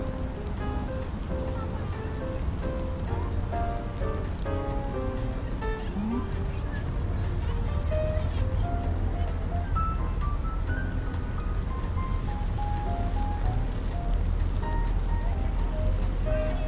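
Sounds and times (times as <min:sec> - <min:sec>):
low rumble of traffic in New York: 0:00.0 - 0:16.6
rain falling on a New York day: 0:00.0 - 0:16.6
scattered voices: 0:05.5 - 0:09.5.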